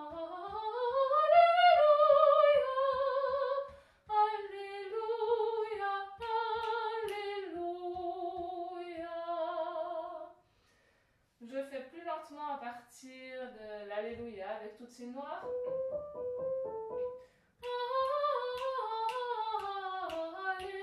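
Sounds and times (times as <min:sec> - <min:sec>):
soprano singing a choral piece: 0:00.0 - 0:10.3, 0:15.1 - 0:20.8.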